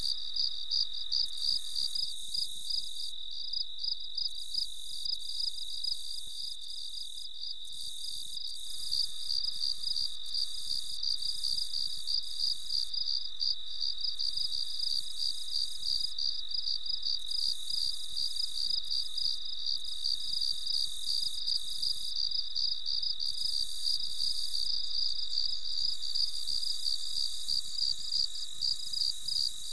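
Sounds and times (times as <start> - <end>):
melodic crickets chirping at night: 0.0 - 29.7.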